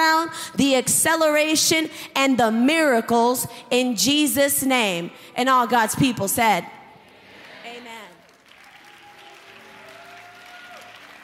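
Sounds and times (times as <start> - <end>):
speech: 0.3 - 6.8
audience clapping: 7.2 - 11.2.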